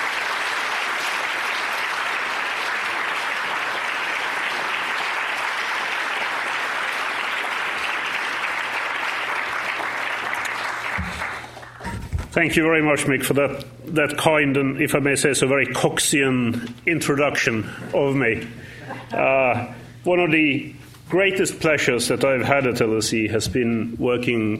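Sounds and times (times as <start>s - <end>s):
audience applause welcoming a lecturer at an LSE evening lecture: 0.0s - 11.8s
speech: 12.4s - 24.5s.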